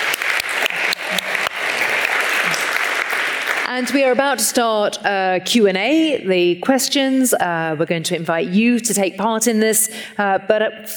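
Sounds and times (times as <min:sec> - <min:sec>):
audience applause: 0:00.0 - 0:04.2
speech: 0:03.8 - 0:10.9.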